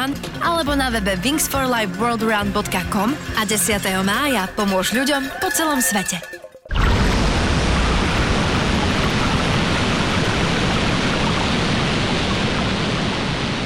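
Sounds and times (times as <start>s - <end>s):
speech: 0.0s - 6.4s
coffee being poured, amplified: 6.6s - 13.6s.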